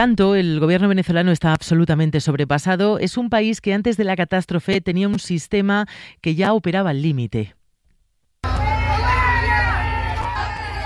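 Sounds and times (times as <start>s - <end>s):
speech: 0.0s - 7.6s
crowd booing: 8.4s - 10.8s.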